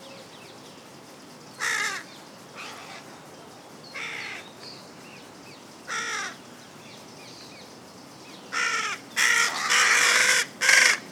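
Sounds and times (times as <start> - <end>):
Carrion crow Corvus corone giving harsh caws: 1.6 - 2.0, 5.9 - 6.4, 8.6 - 11.1.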